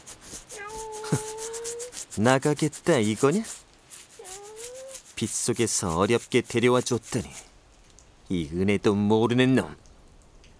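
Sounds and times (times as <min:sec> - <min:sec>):
cat scratching at a door: 0:00.0 - 0:07.5
speech: 0:01.1 - 0:01.3, 0:02.2 - 0:03.6, 0:05.2 - 0:07.4, 0:08.3 - 0:09.8.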